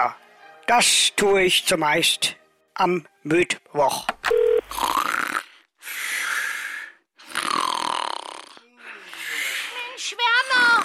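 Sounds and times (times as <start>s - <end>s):
speech: 0.0s - 5.1s
person snoring asleep: 4.6s - 9.8s.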